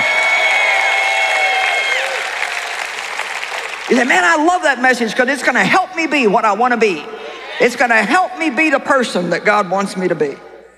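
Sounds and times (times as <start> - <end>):
audience clapping and cheering: 0.0 - 4.7
speech: 3.9 - 10.5.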